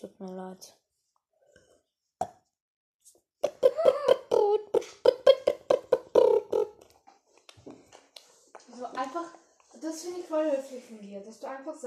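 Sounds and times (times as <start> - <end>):
speech: 0.0 - 0.8, 8.8 - 11.8
burp: 3.4 - 6.8.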